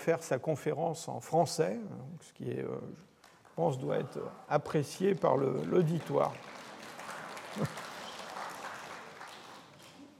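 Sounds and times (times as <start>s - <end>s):
speech: 0.0s - 6.6s, 7.6s - 7.8s
audience applause: 5.0s - 10.1s.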